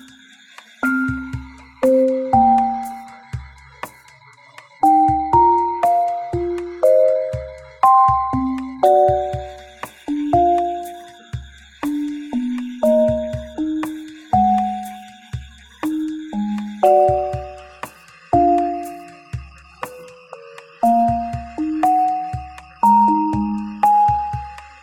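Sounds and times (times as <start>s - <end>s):
game level music: 0.8s - 3.2s, 4.8s - 11.2s, 12.8s - 15.2s, 16.4s - 19.2s, 20.4s - 24.6s.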